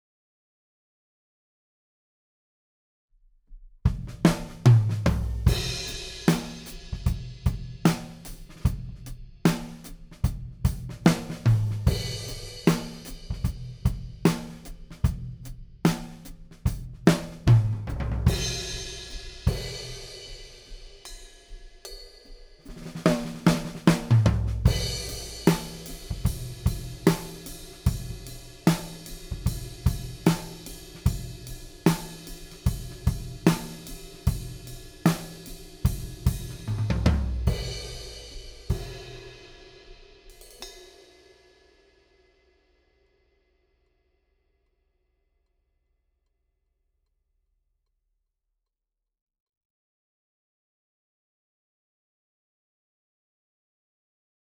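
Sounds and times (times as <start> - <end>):
drums: 3.8 - 42.0.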